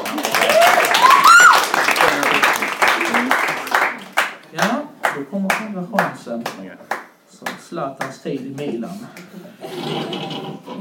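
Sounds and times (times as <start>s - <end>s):
applause: 0.0s - 8.2s
speech: 5.4s - 10.8s.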